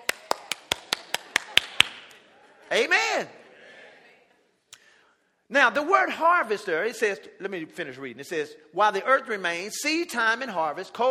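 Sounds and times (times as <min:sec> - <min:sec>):
audience clapping: 0:00.0 - 0:02.2
speech: 0:02.7 - 0:03.4, 0:05.5 - 0:11.1.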